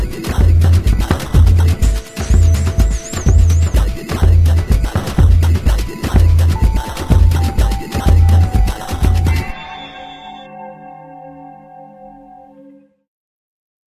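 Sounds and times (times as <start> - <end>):
samba music: 0.0 - 10.9.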